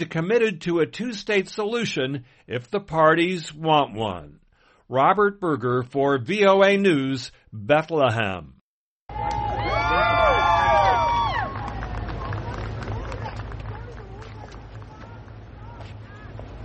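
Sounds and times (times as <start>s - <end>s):
speech: 0.0s - 8.6s
crowd cheering and whooping: 9.1s - 13.4s
scattered claps and shouts: 9.1s - 16.4s.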